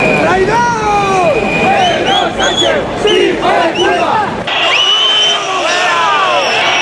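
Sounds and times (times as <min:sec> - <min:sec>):
crowd booing at a parade: 0:00.1 - 0:06.8.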